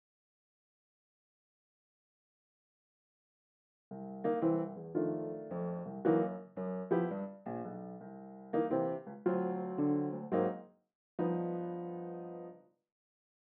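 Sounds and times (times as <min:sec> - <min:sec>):
ragtime piano from a sample library: 0:03.9 - 0:10.6, 0:11.2 - 0:12.6.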